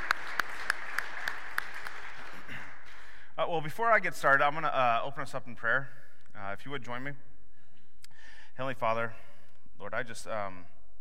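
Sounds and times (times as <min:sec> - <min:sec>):
round of applause: 0:00.0 - 0:03.0
soft noise: 0:00.0 - 0:10.9
speech: 0:03.5 - 0:07.3, 0:08.6 - 0:10.7.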